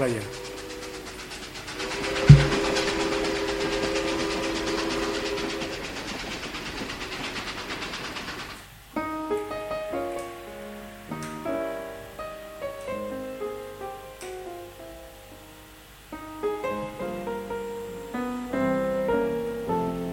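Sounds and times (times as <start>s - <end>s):
piano notes: 0.0s - 5.9s, 9.0s - 20.1s
train whistle: 0.0s - 6.1s
rail cars rumbling and clattering: 0.0s - 8.6s.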